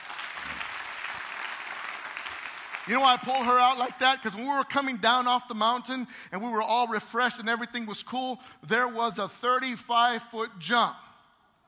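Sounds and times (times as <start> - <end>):
audience applause: 0.0 - 4.0
speech: 2.9 - 11.0.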